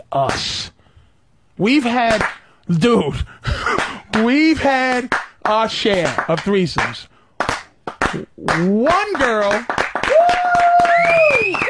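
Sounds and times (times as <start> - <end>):
speech: 0.1 - 0.7, 1.6 - 7.1, 8.1 - 9.9
slow hand claps: 2.1 - 2.5, 3.7 - 11.6
sustained whistling tone gliding up and down: 10.8 - 11.6.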